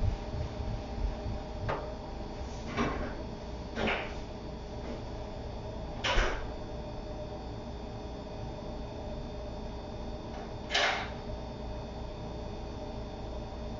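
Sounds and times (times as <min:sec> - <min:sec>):
steady low hum with a faint whine: 0:00.0 - 0:13.7.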